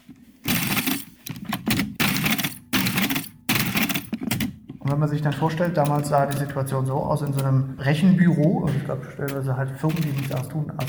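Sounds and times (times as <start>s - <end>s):
motorized mechanical calculating machine clattering: 0.0s - 7.5s, 9.2s - 10.8s
speech: 5.0s - 10.8s.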